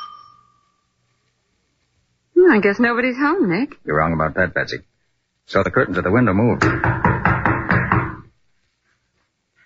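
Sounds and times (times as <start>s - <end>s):
speech: 2.5s - 7.0s
pounding on a door: 6.6s - 8.3s.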